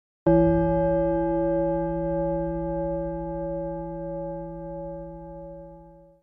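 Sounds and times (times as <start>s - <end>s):
gong: 0.3s - 6.2s.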